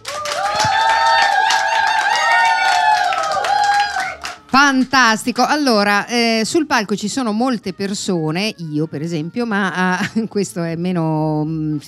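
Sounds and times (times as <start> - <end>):
studio audience applause: 0.0 - 4.6
speech: 4.7 - 11.8.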